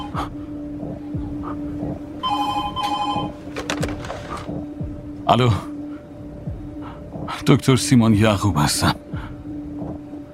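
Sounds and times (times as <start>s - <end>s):
speech: 0.1s - 0.5s, 5.3s - 5.7s, 7.5s - 9.0s
telephone bell ringing: 2.3s - 3.4s.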